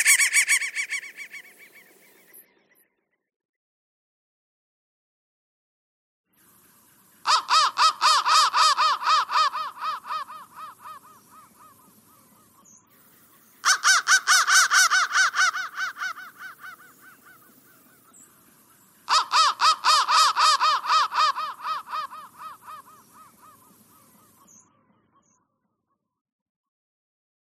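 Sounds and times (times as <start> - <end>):
crow: 0.0 - 2.8, 7.2 - 18.2, 19.0 - 26.0.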